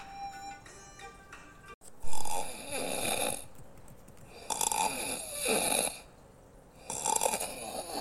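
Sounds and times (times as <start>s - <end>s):
loud rasping snoring: 2.1s - 3.4s, 4.4s - 6.1s, 6.8s - 7.9s.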